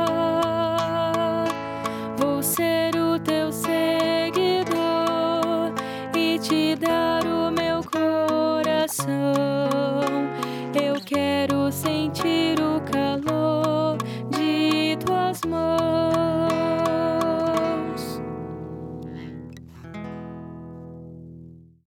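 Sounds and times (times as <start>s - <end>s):
contralto singing: 0.0s - 18.2s.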